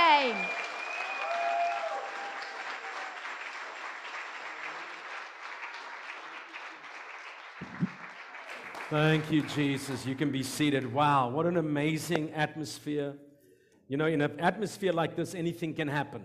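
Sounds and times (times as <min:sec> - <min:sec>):
church congregation clapping in welcome during a service: 0:00.0 - 0:11.0
speech: 0:08.9 - 0:13.2, 0:13.9 - 0:16.2.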